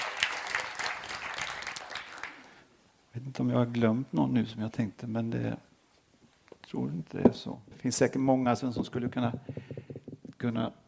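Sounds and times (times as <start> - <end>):
congregation clapping during a church service: 0.0 - 2.6
speech: 3.2 - 5.7, 6.7 - 9.7, 10.4 - 10.8.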